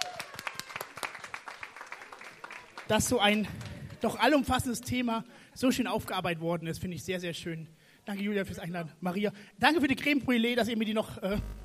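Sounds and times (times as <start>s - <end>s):
audience applause at the end of a live event: 0.0s - 2.9s
speech: 2.9s - 11.5s.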